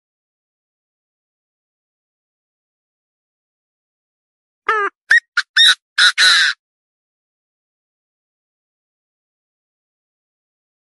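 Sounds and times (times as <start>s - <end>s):
partridge squawking: 4.7s - 6.6s.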